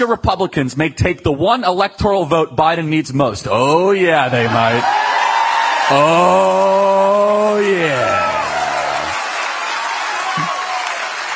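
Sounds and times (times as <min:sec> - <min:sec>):
speech: 0:00.0 - 0:05.1, 0:05.9 - 0:08.4
large crowd cheering and roaring at a rally: 0:04.2 - 0:11.3.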